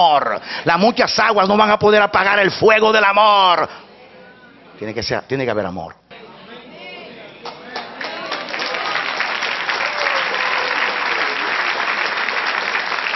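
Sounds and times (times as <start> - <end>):
speech: 0.0 - 3.9, 4.8 - 6.0
audience applause: 7.4 - 13.1.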